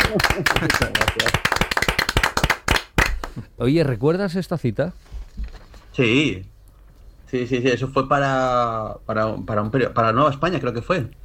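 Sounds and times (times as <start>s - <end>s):
audience ovation: 0.0s - 3.4s
speech: 0.1s - 1.3s, 3.6s - 5.2s, 6.0s - 6.5s, 7.3s - 11.2s.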